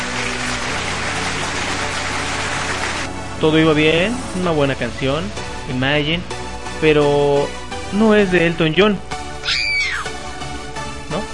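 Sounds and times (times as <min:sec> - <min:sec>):
applause: 0:00.0 - 0:03.1
speech: 0:03.4 - 0:09.6.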